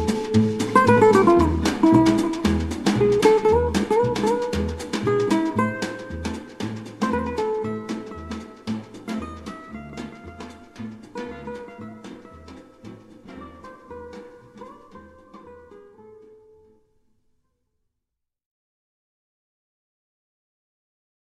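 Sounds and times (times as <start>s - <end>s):
jazz guitar arrangement: 0.0s - 16.7s.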